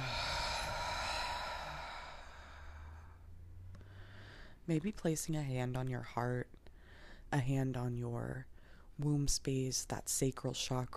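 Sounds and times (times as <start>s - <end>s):
slow exhale through the mouth during guided breathing exercise: 0.0s - 4.6s
speech: 4.7s - 6.6s, 7.3s - 10.9s.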